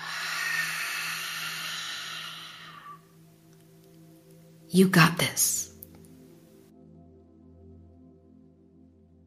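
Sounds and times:
slow exhale: 0:00.0 - 0:03.1
speech: 0:04.7 - 0:05.7.

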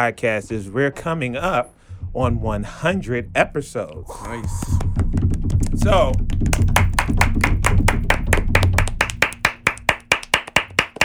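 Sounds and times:
speech: 0:00.0 - 0:05.1, 0:05.8 - 0:06.7
people clapping in a church clap: 0:04.2 - 0:11.0.

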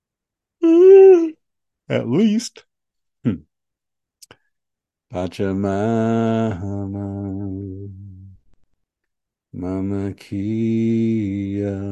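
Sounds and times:
person yawning: 0:00.6 - 0:01.4
speech: 0:01.9 - 0:03.5, 0:05.1 - 0:08.0, 0:09.5 - 0:11.8.

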